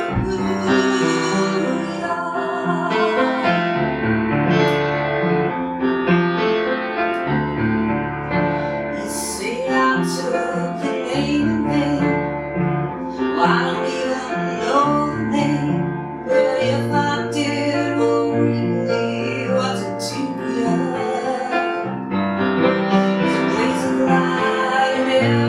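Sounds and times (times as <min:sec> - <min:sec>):
person singing: 0:00.0 - 0:03.8, 0:09.0 - 0:12.3, 0:13.0 - 0:21.9, 0:23.0 - 0:25.4
piano: 0:00.0 - 0:25.4.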